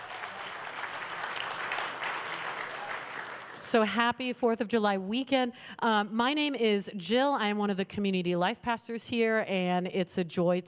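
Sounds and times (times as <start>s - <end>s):
audience applauding: 0.0s - 3.7s
speech: 3.6s - 10.6s.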